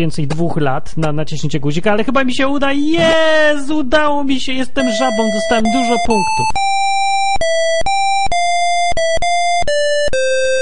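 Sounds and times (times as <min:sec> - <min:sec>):
speech: 0:00.0 - 0:06.7
one-bit video game music: 0:04.8 - 0:10.6.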